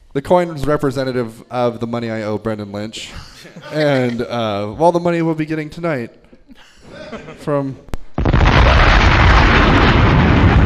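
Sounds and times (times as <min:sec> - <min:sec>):
speech: 0:00.2 - 0:07.9
laughter: 0:03.1 - 0:04.8, 0:06.3 - 0:07.9
bomb explosion sound effect: 0:08.0 - 0:10.6.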